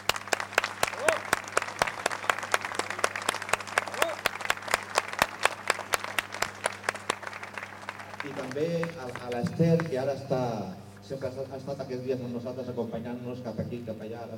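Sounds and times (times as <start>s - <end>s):
audience applause: 0.0s - 10.0s
speech: 8.4s - 14.3s.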